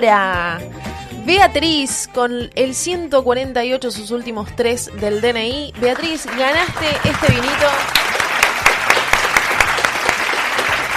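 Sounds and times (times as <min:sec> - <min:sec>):
speech: 0:00.0 - 0:08.0
applause: 0:05.9 - 0:10.9.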